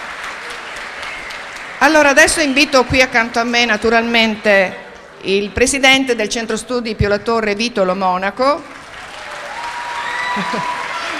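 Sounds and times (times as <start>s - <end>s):
audience applause at Centro Studi Pio La Torre civic ceremony: 0.0s - 1.8s, 8.7s - 11.1s
speech: 1.8s - 8.7s, 10.4s - 10.7s.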